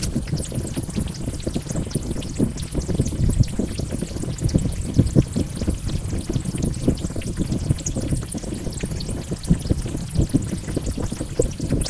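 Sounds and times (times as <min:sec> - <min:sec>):
fire: 0:00.0 - 0:11.8.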